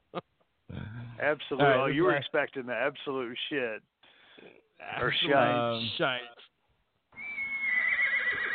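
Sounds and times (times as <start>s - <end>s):
speech: 1.2s - 6.4s
horse neighing: 7.2s - 8.5s.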